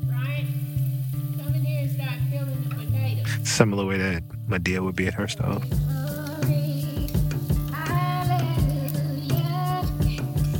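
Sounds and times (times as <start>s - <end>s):
onions sautéing in a skillet: 0.0s - 3.3s, 5.6s - 10.5s
speech: 3.4s - 6.6s.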